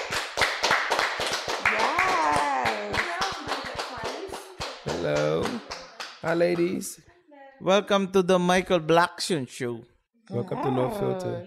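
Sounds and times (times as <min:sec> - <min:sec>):
talk-show audience clapping for two guests: 0:00.0 - 0:07.0
speech: 0:05.0 - 0:11.4.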